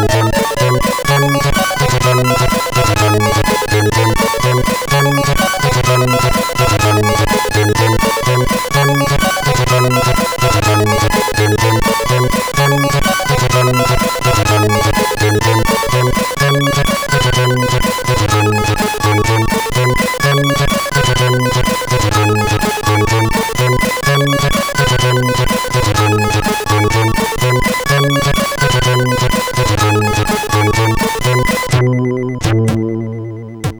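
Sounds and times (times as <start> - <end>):
tune on a SID CSG8580R5 sound chip: 0.0 - 33.7.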